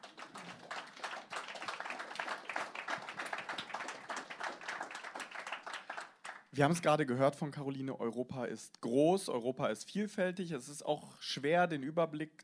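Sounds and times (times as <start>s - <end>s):
audience applause: 0.0s - 6.5s
speech: 6.6s - 12.4s.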